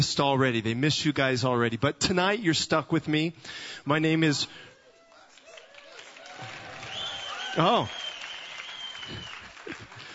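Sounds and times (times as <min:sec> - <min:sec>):
speech: 0:00.0 - 0:04.7, 0:07.6 - 0:08.0
audience applauding: 0:05.0 - 0:10.1.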